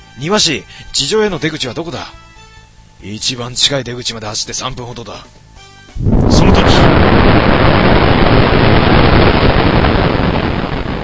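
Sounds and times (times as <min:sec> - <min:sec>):
speech: 0:00.2 - 0:02.2, 0:03.0 - 0:05.4
tremendous explosion: 0:06.0 - 0:11.0.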